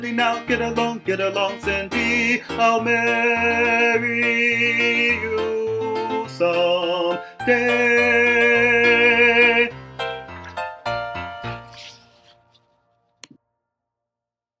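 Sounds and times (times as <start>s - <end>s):
baritone voice: 0.0s - 10.6s.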